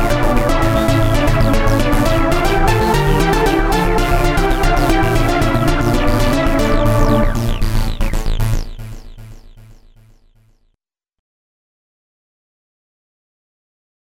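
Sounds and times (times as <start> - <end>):
trance music: 0.0 - 10.5.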